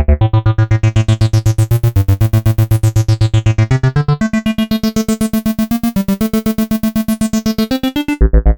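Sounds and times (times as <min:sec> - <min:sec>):
synth: 0:00.2 - 0:08.5.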